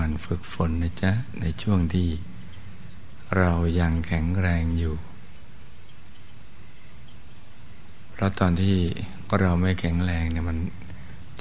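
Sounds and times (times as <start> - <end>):
speech: 0.2 - 2.3, 3.3 - 5.1, 8.2 - 10.8
rain falling on a swamp: 5.2 - 11.3.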